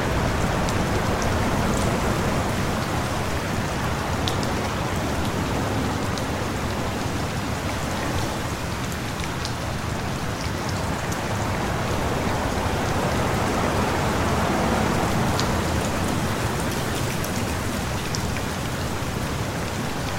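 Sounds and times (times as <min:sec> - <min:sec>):
rain: 0:00.0 - 0:20.1.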